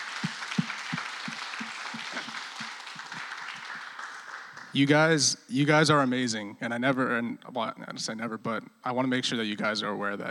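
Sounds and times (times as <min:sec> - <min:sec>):
audience applause: 0:00.0 - 0:04.9
speech: 0:04.7 - 0:10.2.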